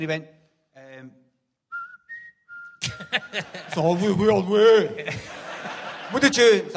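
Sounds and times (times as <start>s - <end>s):
speech: 0.0s - 0.4s, 2.8s - 6.7s
person whistling a tune: 1.7s - 3.4s
laughter: 2.8s - 6.7s.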